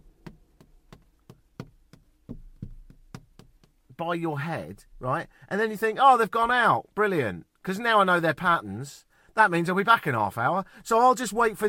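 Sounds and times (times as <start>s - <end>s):
tapping on a car window: 0.1s - 3.9s
speech: 4.0s - 11.6s.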